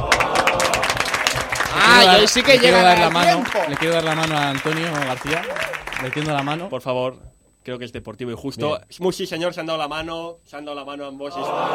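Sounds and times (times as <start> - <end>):
crowd applause: 0.0 - 6.7
speech: 2.0 - 11.7.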